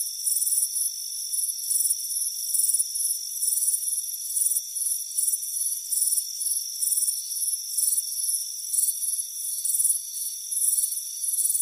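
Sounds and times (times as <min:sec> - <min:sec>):
crickets chirping: 0:00.0 - 0:11.6.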